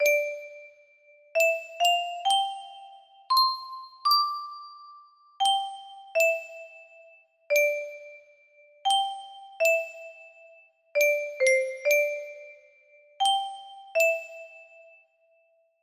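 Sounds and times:
music box melody: 0.0s - 0.8s, 1.4s - 12.6s, 13.2s - 15.0s.

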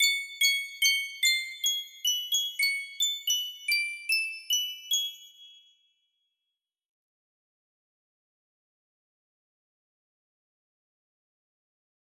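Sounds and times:
scary space music box melody: 0.0s - 6.0s.

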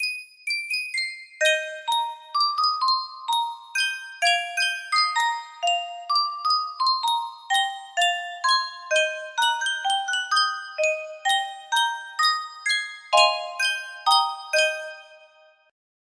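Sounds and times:
Sankyo music box melody: 0.0s - 15.7s.

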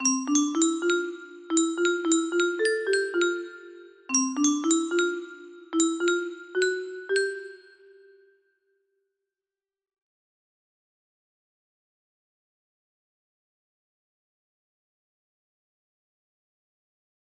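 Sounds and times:
music box melody: 0.0s - 8.3s.

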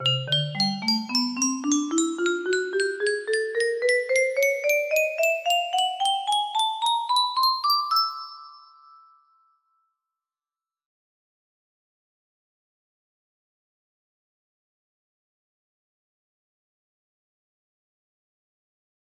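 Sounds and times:
music box melody: 0.0s - 9.6s.

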